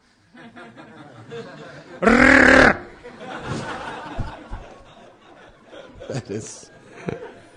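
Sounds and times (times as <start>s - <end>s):
laughter: 0.4s - 7.5s
person imitating a screaming elephant: 2.0s - 2.9s.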